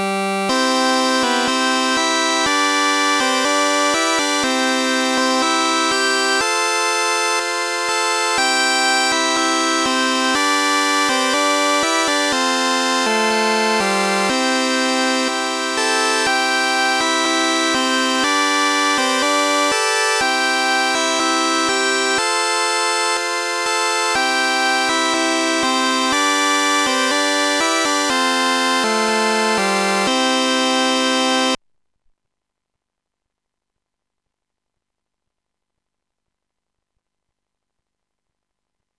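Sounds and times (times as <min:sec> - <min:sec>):
folk song chords: 0:00.0 - 0:31.6.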